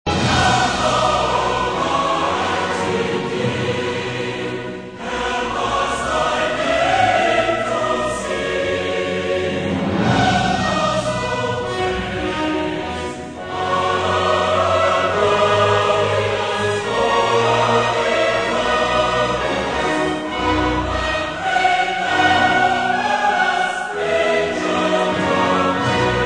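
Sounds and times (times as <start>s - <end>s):
choir singing hymns: 0.1s - 26.2s
orchestra playing hymns: 0.1s - 26.2s.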